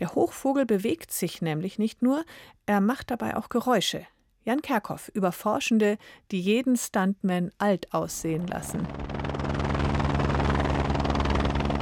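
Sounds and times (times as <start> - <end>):
speech: 0.0 - 9.3
helicopter approaching a mountain summit: 8.1 - 11.8.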